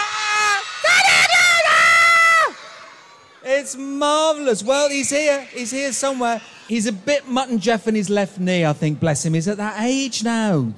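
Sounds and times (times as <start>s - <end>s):
crowd cheering with many children's voices: 0.0s - 8.1s
speech: 3.7s - 10.7s.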